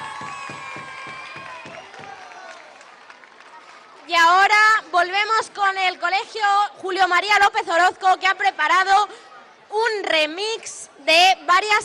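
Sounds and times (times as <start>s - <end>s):
high-pitched shouts and whoops: 0.0s - 2.9s
crowd applause: 0.0s - 4.2s
speech: 4.1s - 11.8s.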